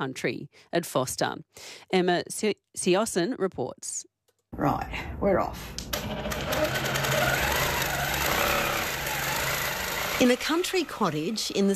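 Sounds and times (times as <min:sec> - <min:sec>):
speech: 0:00.0 - 0:06.9, 0:10.2 - 0:11.7
quilting machine whirring in a country cottage in Nabiac: 0:05.9 - 0:11.7.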